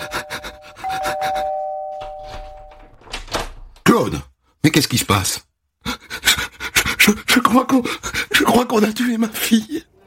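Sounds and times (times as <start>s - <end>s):
doorbell ringing: 0.0s - 3.0s
speech: 4.0s - 5.5s, 7.1s - 9.9s.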